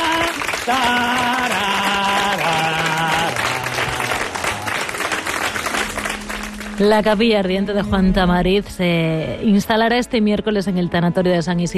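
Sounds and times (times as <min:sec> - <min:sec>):
audience applause: 0:00.0 - 0:06.9
speech: 0:00.7 - 0:01.1, 0:06.8 - 0:11.7.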